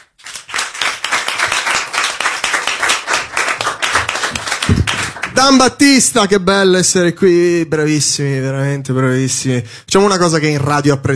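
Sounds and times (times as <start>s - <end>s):
audience applause: 0.2s - 5.7s
speech: 4.7s - 11.1s.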